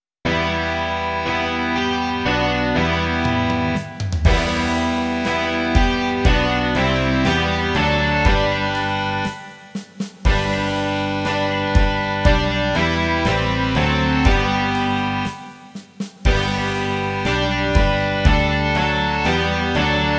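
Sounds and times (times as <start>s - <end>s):
rock music: 0.3s - 20.1s.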